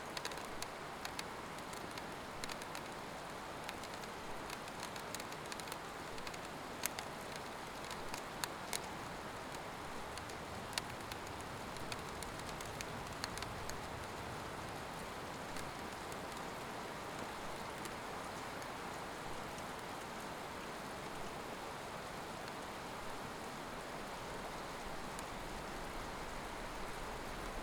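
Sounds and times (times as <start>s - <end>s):
rain heard out of a window: 0.0s - 27.6s.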